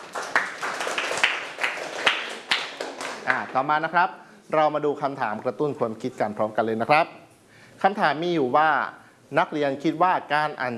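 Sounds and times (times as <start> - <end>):
room full of students applauding: 0.0 - 3.4
speech: 3.3 - 7.2, 7.8 - 10.7.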